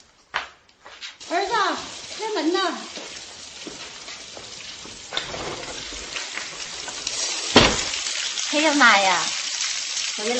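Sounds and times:
heavy rain: 1.2 - 9.3
speech: 1.7 - 3.0, 8.6 - 9.4, 10.2 - 10.3.

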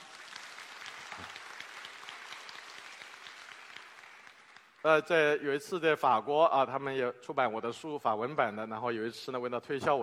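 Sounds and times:
audience applause: 0.0 - 5.1
speech: 4.8 - 10.0.

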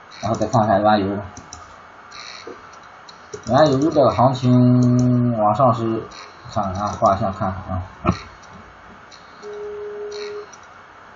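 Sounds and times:
speech: 0.2 - 1.4, 3.4 - 8.3
incoming phone call ringing: 9.1 - 10.5.

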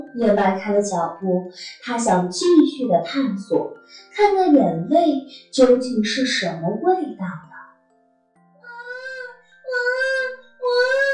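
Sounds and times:
speech: 0.2 - 7.4
baby crying: 8.6 - 11.1.

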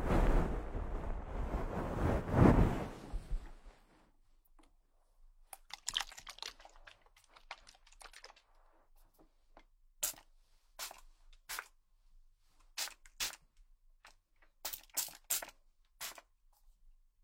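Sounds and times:
rushing rub of a head massage: 0.0 - 3.6.

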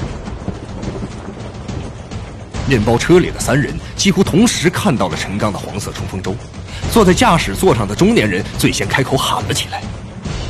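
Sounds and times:
thunder during a lightning storm: 0.0 - 3.6
speech: 2.7 - 10.0.

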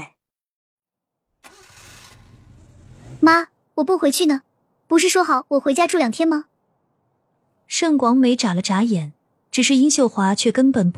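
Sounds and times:
car engine starting: 1.3 - 3.5
speech: 3.2 - 6.5, 7.7 - 10.9.

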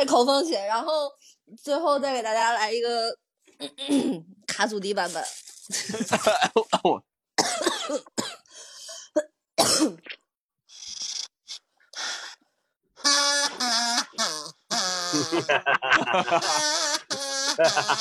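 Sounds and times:
speech: 0.0 - 8.3, 13.0 - 18.0
cough: 3.7 - 4.2, 6.4 - 8.5, 9.2 - 10.1
laughter: 5.7 - 7.0, 15.1 - 16.9, 17.5 - 18.0.

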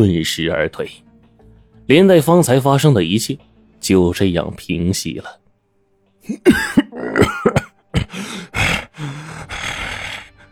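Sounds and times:
speech: 0.0 - 1.0, 1.9 - 5.4, 6.2 - 7.6
person coughing: 6.3 - 8.9.

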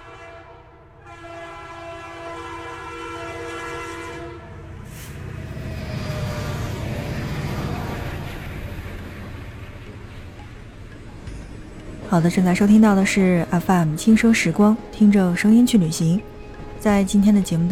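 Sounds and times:
NJ2 diesel locomotive horn on the Qinghai-Tibet Railway: 0.0 - 5.2
train rumbling up the gradients of the Qinghai-Tibet Railway: 0.0 - 17.7
speech: 12.1 - 17.7.

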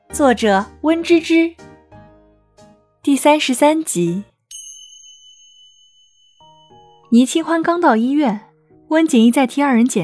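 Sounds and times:
speech: 0.1 - 1.7, 3.0 - 4.3, 7.1 - 10.0
phone notification ding: 4.5 - 7.7.

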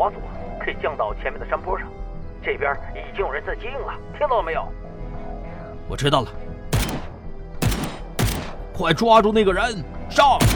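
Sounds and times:
speech: 0.0 - 4.9, 5.9 - 6.4, 8.8 - 10.5
bullets hitting walls: 6.8 - 8.7.

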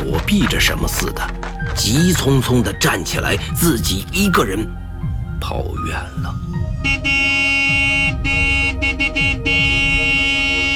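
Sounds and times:
speech: 0.0 - 4.8, 5.4 - 9.6
car horn honking: 6.8 - 10.7.

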